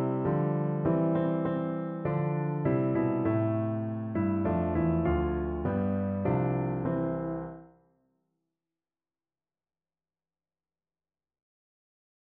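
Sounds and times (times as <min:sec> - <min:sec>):
Christmas piano duet: 0:00.0 - 0:07.7.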